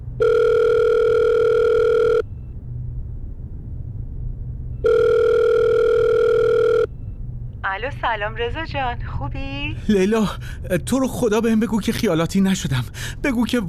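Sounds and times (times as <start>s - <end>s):
telephone ringing after dialing a number: 0.2s - 2.2s, 4.8s - 6.9s
speech: 8.0s - 13.6s.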